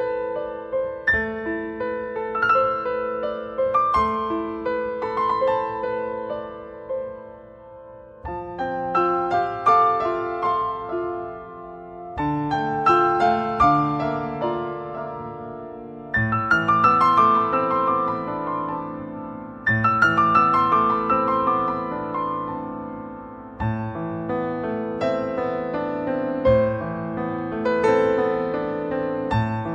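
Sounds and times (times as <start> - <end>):
piano piece: 0.0 - 29.7.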